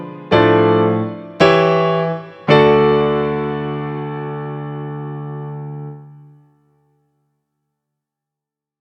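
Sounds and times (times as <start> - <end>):
piano prelude recorded in mono: 0.0 - 6.7.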